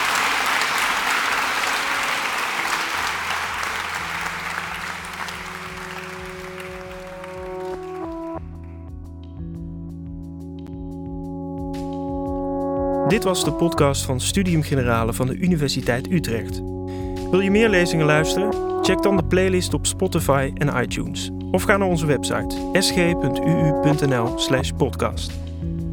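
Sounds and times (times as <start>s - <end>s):
audience applause: 0.0s - 8.4s
sustained musical tones: 3.2s - 9.2s, 10.3s - 14.2s, 15.4s - 24.9s
speech: 13.1s - 25.4s.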